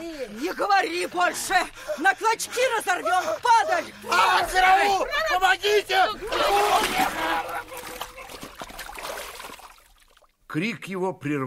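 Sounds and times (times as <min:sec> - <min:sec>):
speech: 0:00.3 - 0:07.7, 0:10.5 - 0:11.4
laughter: 0:05.6 - 0:08.8
body plunging into water: 0:06.3 - 0:10.3.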